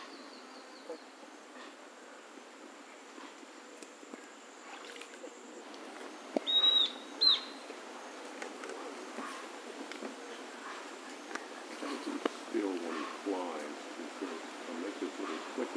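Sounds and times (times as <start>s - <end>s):
steady hiss: 0.0s - 15.7s
bird high whistles: 6.4s - 7.6s.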